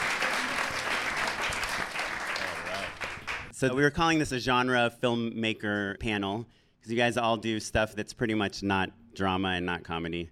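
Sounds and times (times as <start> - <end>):
audience applause: 0.0 - 3.5
speech: 3.6 - 10.3.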